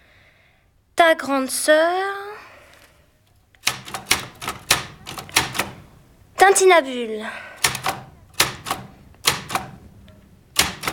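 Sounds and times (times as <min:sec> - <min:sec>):
speech: 0:01.1 - 0:02.3, 0:06.4 - 0:07.5
typewriter keys clacking: 0:03.6 - 0:05.8, 0:07.6 - 0:10.9.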